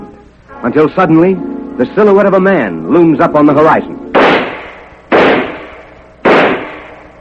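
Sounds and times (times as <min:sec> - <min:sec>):
speech: 0:00.6 - 0:04.4
pistol shots fired by a woman at a man-sized silhouette target on a low hill: 0:04.2 - 0:07.2.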